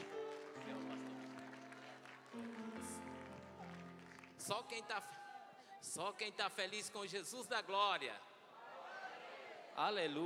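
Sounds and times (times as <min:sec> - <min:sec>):
audience applauding: 0:00.0 - 0:05.4
speech: 0:04.5 - 0:05.2, 0:05.8 - 0:08.3, 0:09.8 - 0:10.2.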